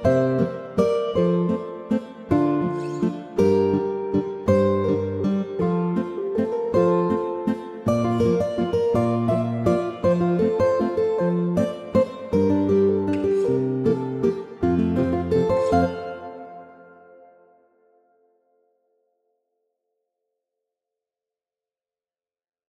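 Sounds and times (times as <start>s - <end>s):
two guitars playing: 0.0s - 17.7s.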